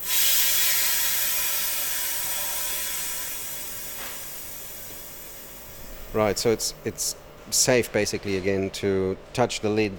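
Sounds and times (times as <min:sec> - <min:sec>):
pressure released from a leaf pressure chamber: 0:00.0 - 0:06.3
speech: 0:06.2 - 0:09.9.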